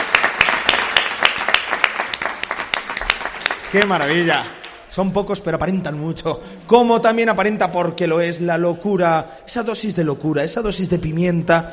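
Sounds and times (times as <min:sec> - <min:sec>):
small audience applause: 0:00.0 - 0:04.8
speech: 0:03.7 - 0:11.7.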